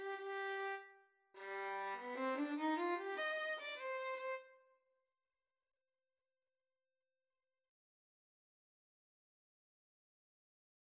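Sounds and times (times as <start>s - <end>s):
violin: 0.0s - 4.6s.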